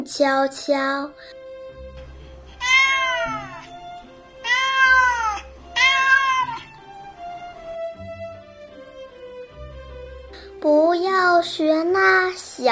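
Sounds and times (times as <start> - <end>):
speech: 0.0 - 1.4, 10.6 - 12.7
cat meowing: 2.5 - 6.9.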